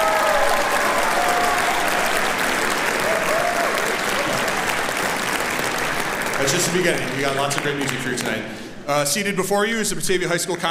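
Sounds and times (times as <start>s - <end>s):
concert audience applause: 0.0s - 8.5s
speech: 6.5s - 10.6s.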